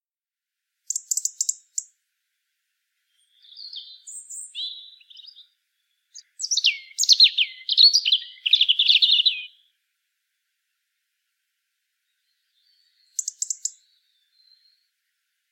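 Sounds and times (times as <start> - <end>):
European robin singing: 0.9 - 2.0, 3.0 - 9.8, 12.0 - 15.0.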